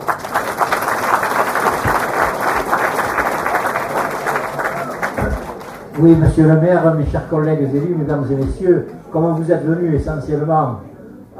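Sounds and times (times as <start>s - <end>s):
crowd applauding: 0.0s - 8.6s
faint murmur of voices: 1.5s - 11.3s
speech: 6.0s - 11.3s.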